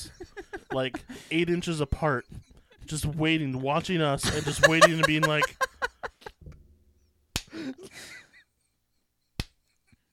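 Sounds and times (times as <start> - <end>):
laughter: 0.0 - 3.4, 4.2 - 6.4
speech: 0.1 - 5.6
hand claps in front of a microphone: 7.4 - 7.6, 9.4 - 9.6.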